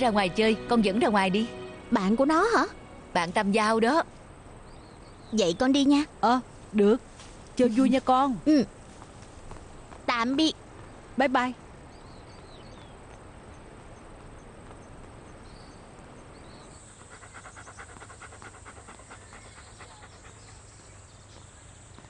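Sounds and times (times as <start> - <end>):
speech: 0.0 - 4.2, 5.3 - 8.8, 10.2 - 10.6, 11.2 - 11.6
dog panting: 16.6 - 21.2.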